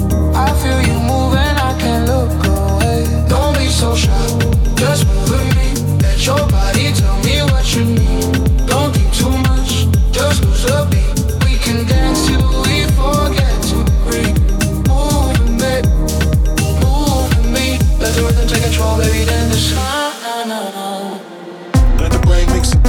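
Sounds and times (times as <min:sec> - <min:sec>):
Afro House music: 0:00.0 - 0:20.3, 0:21.8 - 0:22.8.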